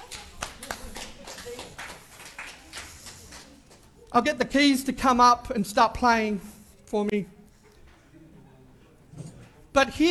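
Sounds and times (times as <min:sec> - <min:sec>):
audience clapping: 0:00.0 - 0:03.8
speech: 0:04.1 - 0:07.4, 0:09.8 - 0:10.0.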